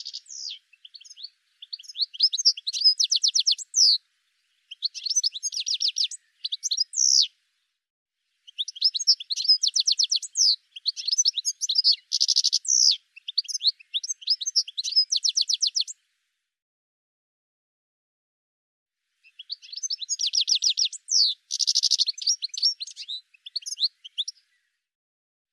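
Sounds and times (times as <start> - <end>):
high sharp bird chirps: 0.0 - 4.0, 4.7 - 7.3, 8.5 - 16.0, 19.3 - 24.4.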